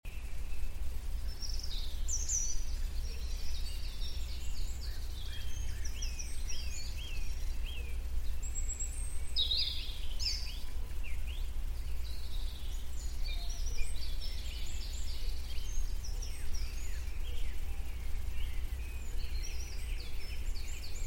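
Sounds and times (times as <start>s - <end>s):
birds chirping: 0.1s - 21.0s
heavy low rumble: 0.1s - 21.0s.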